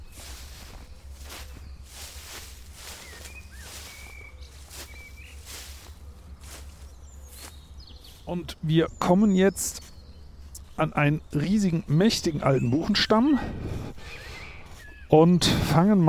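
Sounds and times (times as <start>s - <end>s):
footsteps of people walking through a forest: 0.0s - 10.7s
bird chirps: 0.0s - 15.4s
speech: 8.3s - 9.8s, 10.8s - 13.8s, 15.1s - 16.0s.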